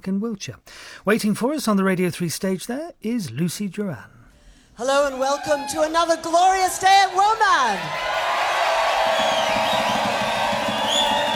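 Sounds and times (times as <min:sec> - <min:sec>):
speech: 0:00.0 - 0:04.2, 0:04.8 - 0:08.2, 0:09.2 - 0:09.6
festival crowd cheering at WOMAD: 0:05.1 - 0:11.3.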